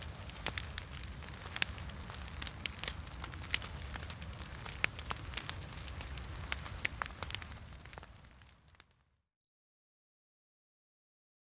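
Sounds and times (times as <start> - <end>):
Easter bonfires: 0.0 - 9.1.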